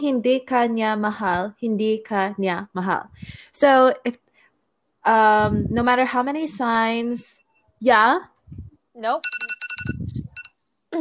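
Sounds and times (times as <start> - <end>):
speech: 0.0 - 4.2, 5.0 - 10.0
timer alarm beeping: 9.2 - 10.5.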